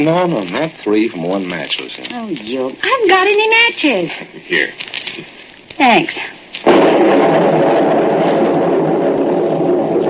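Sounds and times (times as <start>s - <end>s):
speech: 0.0s - 7.9s
thunderclap and rumble during a storm: 6.6s - 10.0s.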